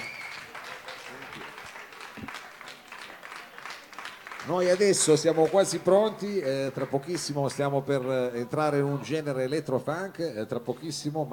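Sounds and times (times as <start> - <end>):
audience applause: 0.0 - 7.7
speech: 4.5 - 11.3.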